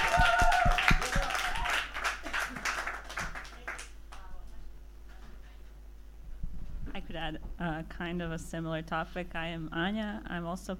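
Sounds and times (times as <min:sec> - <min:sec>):
applause: 0:00.0 - 0:04.3
speech: 0:07.2 - 0:10.7.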